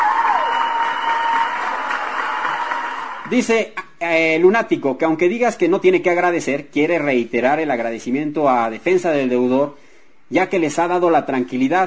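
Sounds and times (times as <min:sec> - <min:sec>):
applause from many hands: 0:00.0 - 0:03.4
speech: 0:03.3 - 0:11.8.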